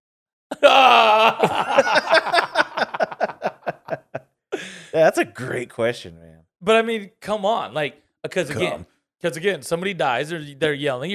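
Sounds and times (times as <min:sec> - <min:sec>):
voice imitating a ghost moaning: 0:00.5 - 0:01.6
speech: 0:00.5 - 0:02.2, 0:05.0 - 0:11.1
laughter: 0:00.5 - 0:05.0.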